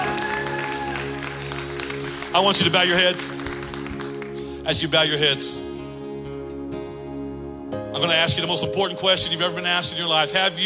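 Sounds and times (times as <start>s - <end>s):
audience clapping hands: 0.0s - 4.6s
speech: 2.3s - 3.4s, 4.7s - 5.7s, 8.0s - 10.6s.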